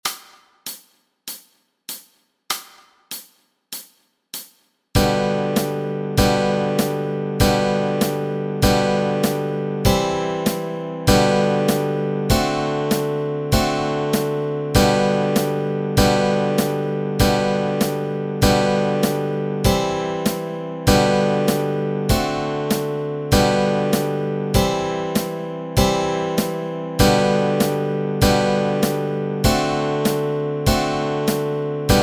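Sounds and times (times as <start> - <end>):
easy guitar chords: 5.0 - 32.0.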